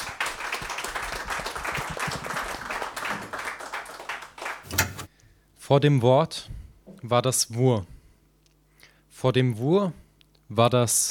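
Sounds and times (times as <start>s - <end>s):
crowd applause: 0.0s - 4.6s
speech: 5.7s - 7.9s, 9.2s - 11.0s.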